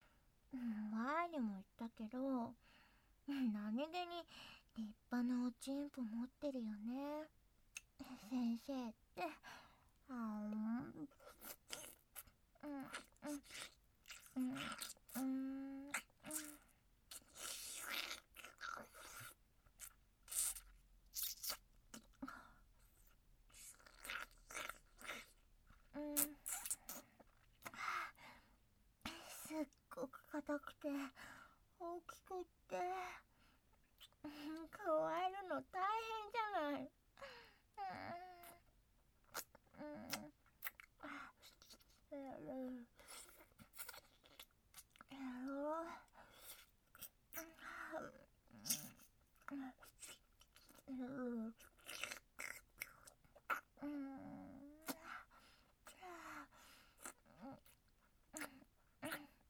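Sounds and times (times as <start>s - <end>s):
background noise: 0.0s - 59.4s
oral sex sounds: 10.1s - 27.9s, 33.9s - 59.4s.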